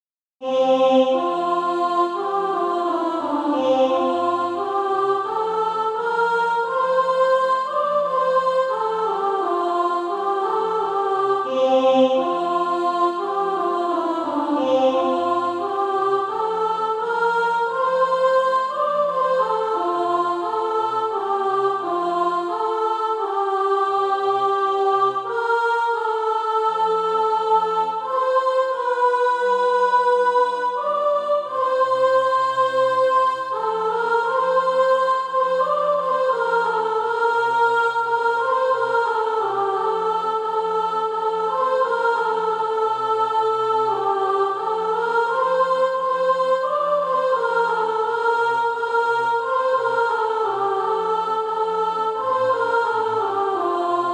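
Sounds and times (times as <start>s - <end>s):
soprano singing: 0.4s - 54.1s.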